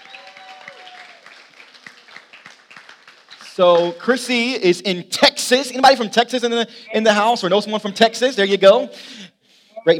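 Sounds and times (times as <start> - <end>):
audience applause welcoming a pastor at an evening gathering: 0.0 - 4.6
speech: 3.6 - 9.9.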